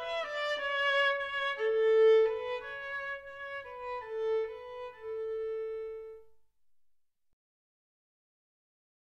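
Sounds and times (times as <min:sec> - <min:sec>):
violin: 0:00.0 - 0:06.4.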